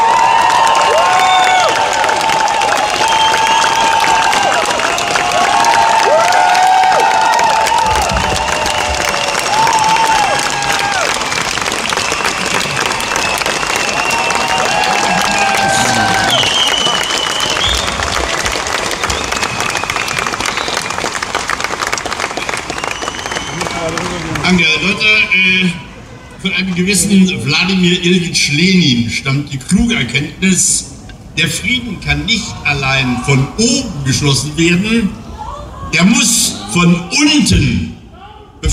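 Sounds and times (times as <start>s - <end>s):
audience applause: 0.0s - 25.2s
speech: 26.8s - 35.2s, 35.9s - 37.9s, 38.6s - 38.7s.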